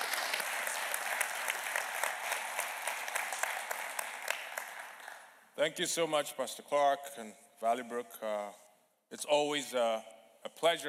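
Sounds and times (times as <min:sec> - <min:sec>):
church congregation at Valleybrook applauding to welcome a guest pastor: 0:00.0 - 0:05.4
speech: 0:05.6 - 0:10.8.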